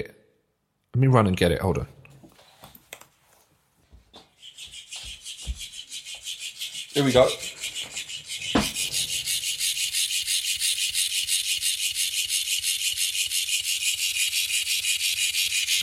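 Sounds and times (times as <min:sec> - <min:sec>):
speech: 0:01.0 - 0:02.0, 0:07.0 - 0:07.5
electric flipping cat toy running: 0:08.5 - 0:15.8.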